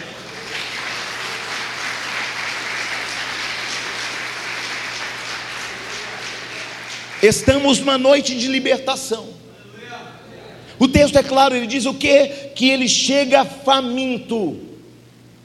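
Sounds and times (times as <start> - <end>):
audience applause: 0.0 - 7.8
speech: 7.2 - 9.4, 10.8 - 14.7.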